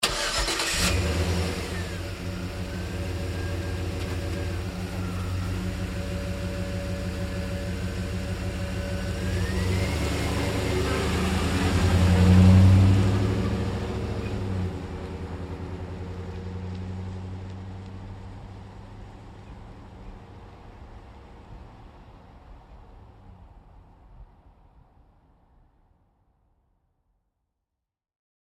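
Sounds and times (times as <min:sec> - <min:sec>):
GMC Savana truck starting: 0:00.0 - 0:18.3
GMC Savana truck driving away slowly: 0:00.1 - 0:24.0.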